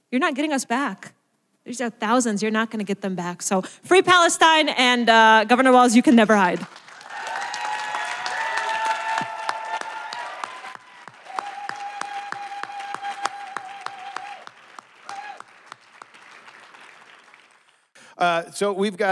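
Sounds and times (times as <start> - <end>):
speech: 0.1 - 6.8, 18.2 - 19.0
audience applause: 6.5 - 17.9.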